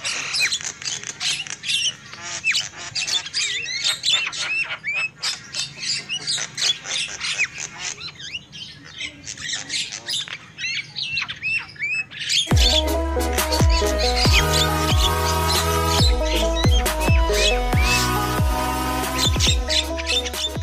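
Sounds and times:
lovebirds squawking: 0.0 - 20.6
loud instrumental music: 12.5 - 20.6.

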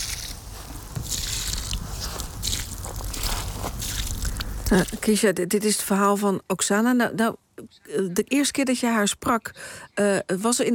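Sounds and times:
water poured onto fresh flowers on a grave: 0.0 - 5.1
speech: 4.7 - 10.7.

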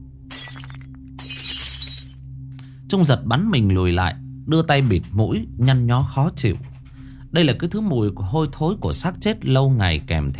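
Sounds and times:
jar dropped and shattering: 0.3 - 2.2
speech: 2.9 - 6.7, 7.3 - 10.3.

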